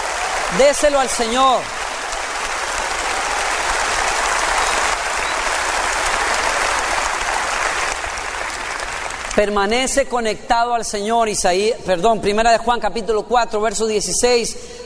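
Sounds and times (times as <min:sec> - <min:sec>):
audience applause: 0:00.0 - 0:09.6
speech: 0:00.5 - 0:01.8, 0:09.4 - 0:14.8.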